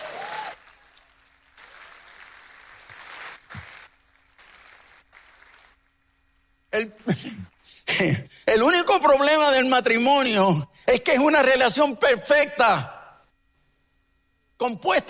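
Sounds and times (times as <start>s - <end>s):
audience applause: 0.0s - 5.8s
speech: 6.8s - 13.0s, 14.6s - 15.0s.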